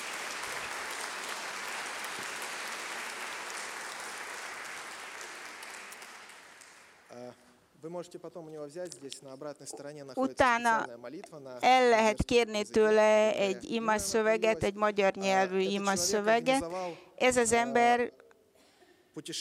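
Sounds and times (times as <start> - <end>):
audience applause: 0.0 - 7.1
speech: 7.3 - 18.2, 19.2 - 19.4.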